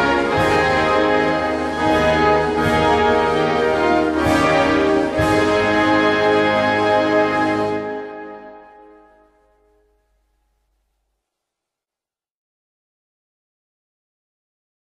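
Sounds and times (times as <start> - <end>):
national anthem: 0.0 - 9.3.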